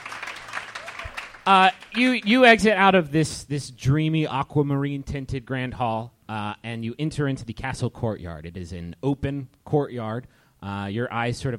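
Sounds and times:
live audience cheering and applauding: 0.0 - 2.3
speech: 1.5 - 11.5.

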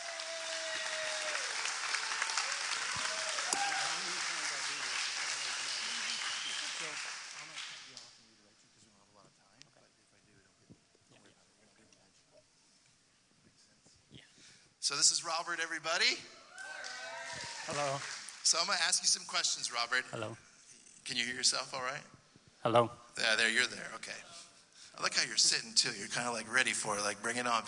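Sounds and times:
applause: 0.0 - 8.2, 16.6 - 18.7
speech: 14.9 - 16.4, 17.7 - 20.5, 21.1 - 24.4, 25.0 - 27.6.

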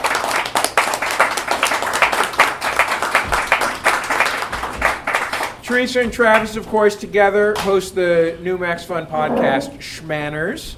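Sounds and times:
applause: 0.0 - 5.7
speech: 5.7 - 10.7.

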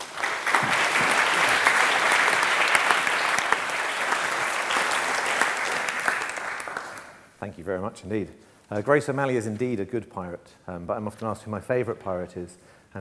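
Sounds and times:
audience applause welcoming a speaker: 0.0 - 7.2
speech: 7.6 - 12.9.

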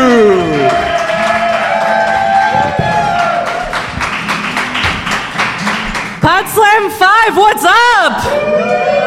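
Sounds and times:
thunderous audience applause: 0.2 - 6.2
speech: 7.0 - 8.9.

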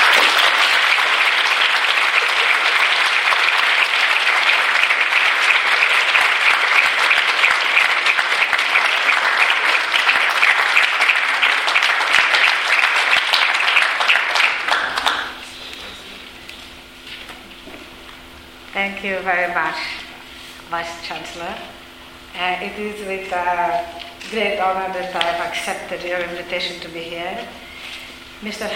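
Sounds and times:
audience applause welcoming Minister Peres: 0.0 - 15.5
speech: 19.0 - 20.0, 20.7 - 21.8, 22.4 - 27.6, 28.4 - 28.7.

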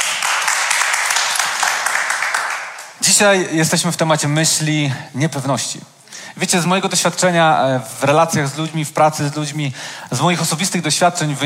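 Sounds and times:
audience applause: 0.0 - 3.0
speech: 3.1 - 11.4.

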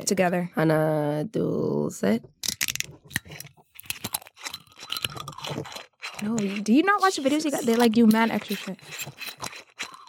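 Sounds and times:
speech: 0.0 - 2.4, 5.6 - 9.5
metal twist caps on soju bottles being screwed open: 2.4 - 10.0.

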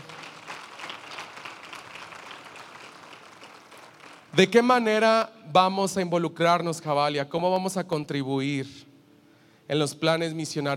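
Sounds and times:
audience applause: 0.0 - 4.4
speech: 4.4 - 8.9, 9.7 - 10.7.

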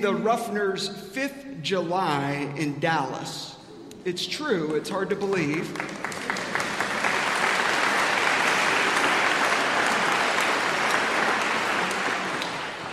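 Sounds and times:
speech: 0.0 - 6.2
audience applause: 5.4 - 12.9.

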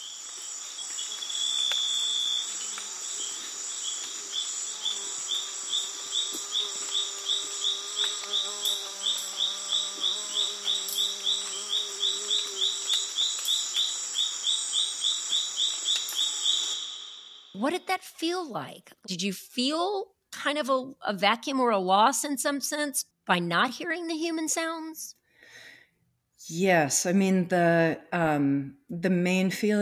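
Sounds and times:
Amazon rainforest insects buzzing and chirping: 0.0 - 17.8
speech: 17.6 - 25.2, 26.5 - 29.8.

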